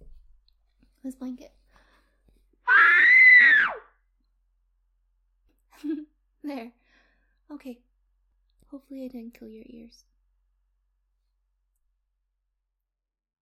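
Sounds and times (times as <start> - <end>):
person screaming into a blanket: 2.7 - 3.9.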